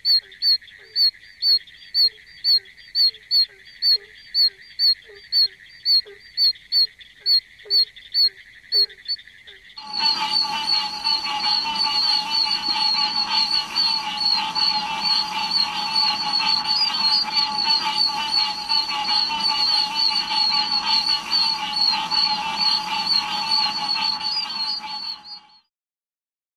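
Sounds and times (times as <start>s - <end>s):
oak toad chorus: 0.0s - 25.6s
low hum: 9.8s - 25.6s.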